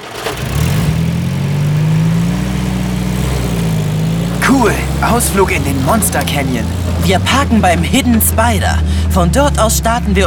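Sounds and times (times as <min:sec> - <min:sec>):
car engine starting and driving off: 0:00.0 - 0:10.2
speech: 0:04.6 - 0:10.2.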